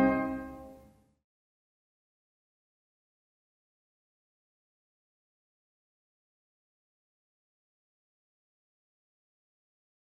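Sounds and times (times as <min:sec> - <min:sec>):
trumpets playing a rigaudon: 0:00.0 - 0:00.7.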